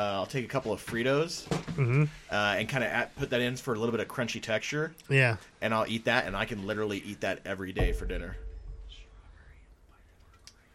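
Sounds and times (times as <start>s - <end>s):
speech: 0.0s - 8.5s
low rumble: 7.8s - 10.2s
whispering: 8.9s - 10.7s.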